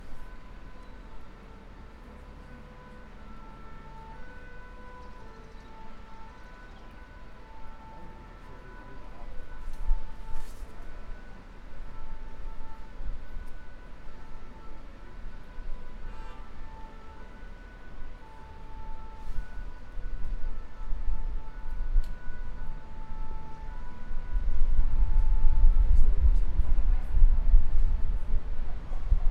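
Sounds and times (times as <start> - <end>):
sirens heard from top of a tower in Bordeaux: 0.0 - 29.3.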